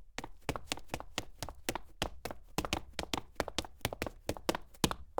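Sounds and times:
high heels footsteps on clean cement: 0.2 - 5.1.

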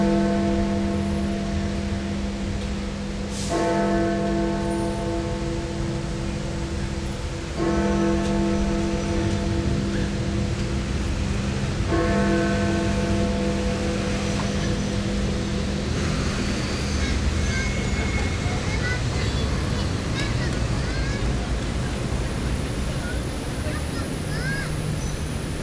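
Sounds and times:
city bells in London: 0.0 - 19.1
city street traffic in London: 0.0 - 25.6.

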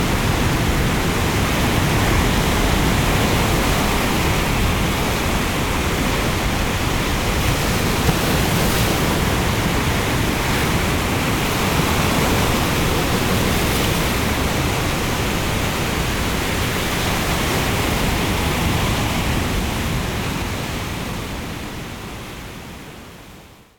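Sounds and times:
sea rumble in an ocean storm: 0.0 - 20.5
heavy waves surf in an ocean storm: 0.0 - 23.0.

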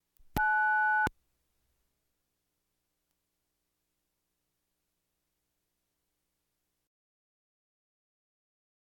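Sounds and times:
household telephones: 0.4 - 1.1.

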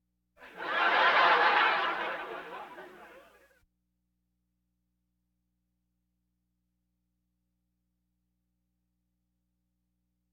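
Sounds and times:
audience laughter: 0.4 - 3.5.

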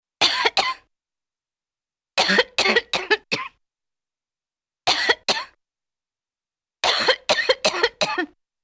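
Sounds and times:
woman with nagging cough: 0.2 - 0.9, 2.2 - 3.6, 4.9 - 5.6, 6.8 - 8.4.

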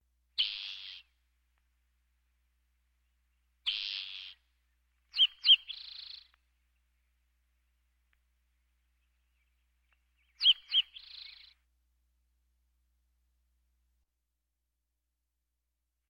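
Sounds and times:
birds: 0.4 - 1.7, 2.9 - 11.6.

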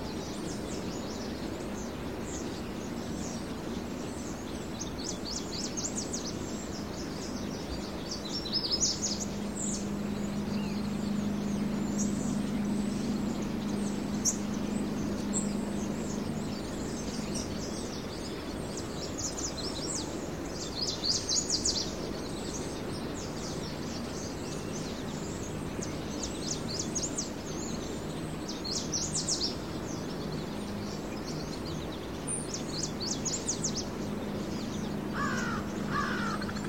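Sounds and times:
various birds in early morning country ambience: 0.0 - 36.6.

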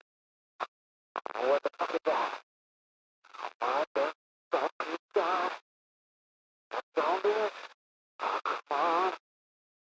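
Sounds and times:
radio: 1.2 - 2.3, 3.4 - 5.6, 6.8 - 7.6, 8.2 - 9.2.

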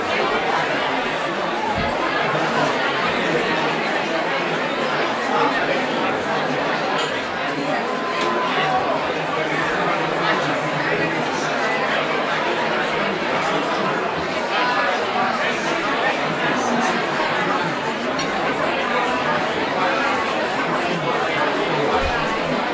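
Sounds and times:
busy indoor crowd walla at a reception: 0.0 - 22.7.

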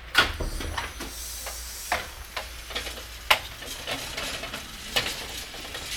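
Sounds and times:
hospital sound effects: 0.1 - 5.8.

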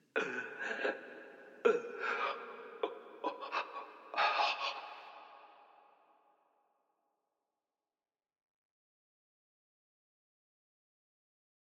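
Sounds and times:
man lamenting: 0.1 - 5.3.

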